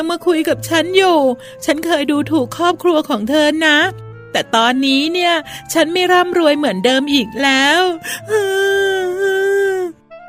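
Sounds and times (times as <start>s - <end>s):
speech: 0.0s - 9.4s
girl crying: 8.0s - 10.0s.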